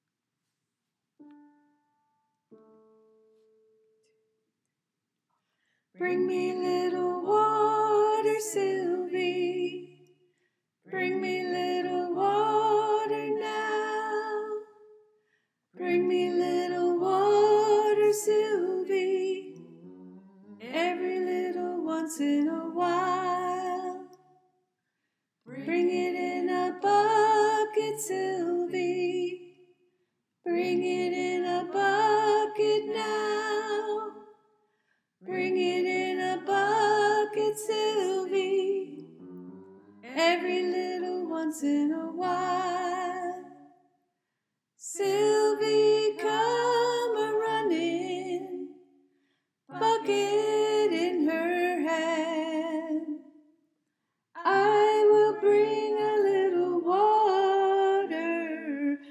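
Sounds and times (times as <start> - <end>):
soprano singing: 6.0 - 10.0, 10.9 - 14.8, 15.8 - 20.0, 20.6 - 24.2, 25.5 - 29.6, 30.5 - 34.2, 35.2 - 39.3, 40.0 - 43.6, 44.8 - 48.7, 49.7 - 53.2, 54.4 - 59.0.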